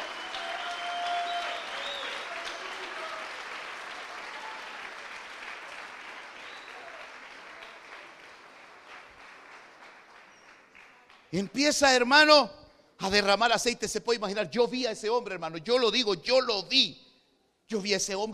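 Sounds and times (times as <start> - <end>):
audience clapping: 0.0 - 12.1
speech: 11.3 - 17.0, 17.7 - 18.3.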